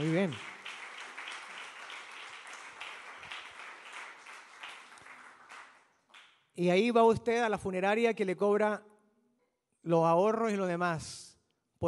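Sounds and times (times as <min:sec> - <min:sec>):
speech: 0:00.0 - 0:00.5, 0:06.6 - 0:08.9, 0:09.8 - 0:11.8
audience applause: 0:00.0 - 0:05.9.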